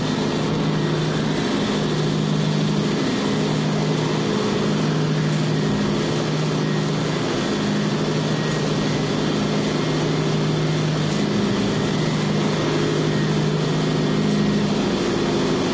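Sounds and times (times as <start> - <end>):
cartoon motor generator running steady: 0.0 - 15.7.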